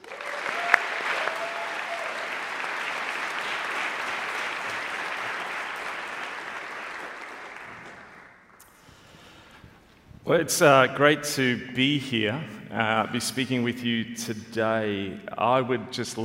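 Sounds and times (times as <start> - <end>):
audience applause welcoming a speaker at a campus gathering: 0.0 - 8.6
speech: 10.3 - 16.2.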